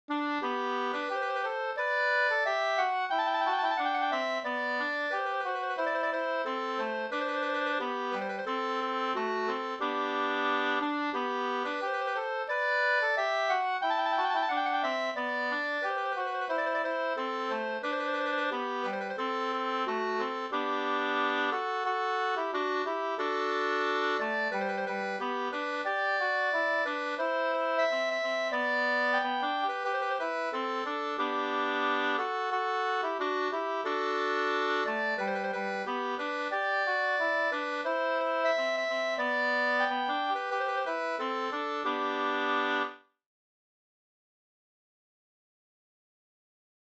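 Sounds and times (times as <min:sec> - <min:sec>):
folk song melody: 0:00.1 - 0:43.0.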